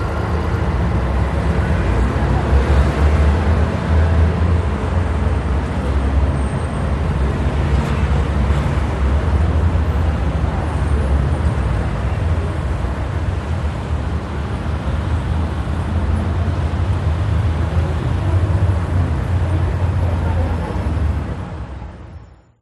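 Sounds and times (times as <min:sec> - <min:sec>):
city transit bus: 0:00.0 - 0:22.6.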